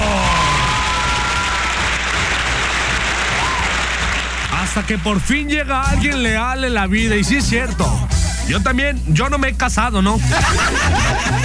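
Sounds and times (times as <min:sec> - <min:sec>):
faint vocal cheer: 0:00.0 - 0:04.6
audience applause: 0:00.0 - 0:05.1
speech: 0:04.8 - 0:11.4
laughter: 0:10.2 - 0:11.4.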